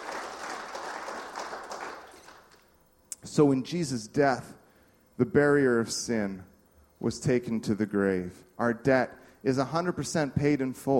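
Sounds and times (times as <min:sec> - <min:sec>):
audience clapping: 0:00.0 - 0:02.7
speech: 0:03.4 - 0:04.6, 0:05.2 - 0:10.9.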